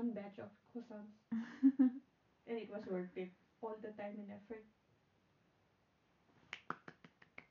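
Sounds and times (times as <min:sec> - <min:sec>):
speech: 0:00.2 - 0:04.8
hand claps: 0:06.5 - 0:07.5.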